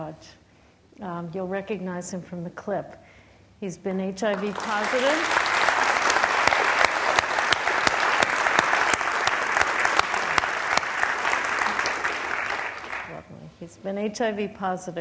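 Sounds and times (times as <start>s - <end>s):
speech: 0.0s - 0.4s, 1.0s - 5.4s, 13.8s - 15.0s
audience applause: 4.4s - 13.1s.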